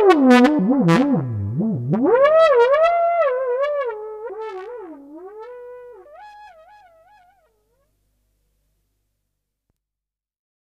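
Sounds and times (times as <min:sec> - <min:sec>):
trumpet: 0:00.0 - 0:07.9.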